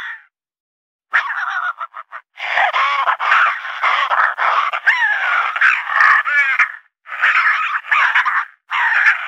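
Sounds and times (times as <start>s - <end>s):
raccoon chittering: 1.1s - 9.2s.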